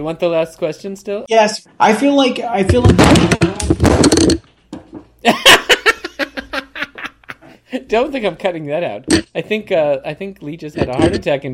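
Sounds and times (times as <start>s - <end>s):
speech: 0.0s - 3.6s, 5.2s - 5.6s, 7.8s - 11.5s
microphone knocked over: 2.7s - 5.2s
people laughing: 5.2s - 7.5s.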